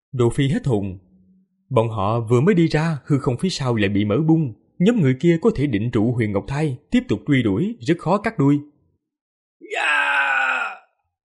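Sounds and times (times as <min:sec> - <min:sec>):
speech: 0:00.1 - 0:01.1, 0:01.7 - 0:08.7
anguished drawn-out human wail: 0:09.6 - 0:10.9.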